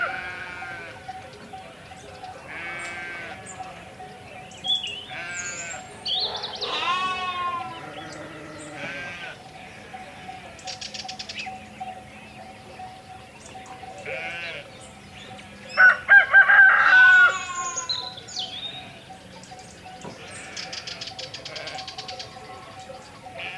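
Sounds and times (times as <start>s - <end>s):
sheep bleating: 0.0s - 1.2s, 2.5s - 3.7s, 5.0s - 5.9s, 6.6s - 10.8s, 14.0s - 14.8s, 20.2s - 22.7s, 23.3s - 23.5s
farmyard animal calls: 0.0s - 23.5s
rooster crowing: 15.7s - 18.0s.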